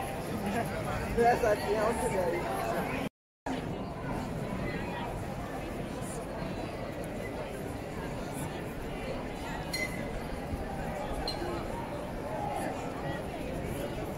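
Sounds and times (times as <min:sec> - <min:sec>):
crowded street ambience: 0:00.0 - 0:14.1.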